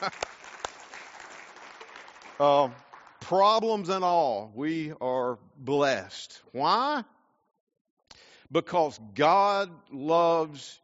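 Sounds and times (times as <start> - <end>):
speech: 0.0 - 0.4, 2.4 - 7.2, 8.5 - 10.8
audience clapping hands: 0.0 - 3.7.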